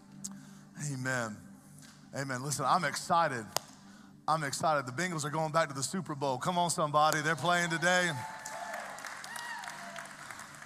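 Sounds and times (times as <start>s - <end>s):
speech: 0.8s - 1.5s, 2.1s - 3.6s, 4.3s - 8.3s
audience clapping: 7.1s - 10.6s.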